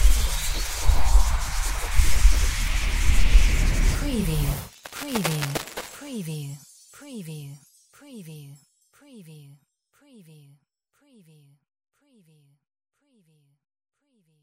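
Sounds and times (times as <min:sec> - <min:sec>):
sci-fi magic healing effect: 0:00.0 - 0:06.4.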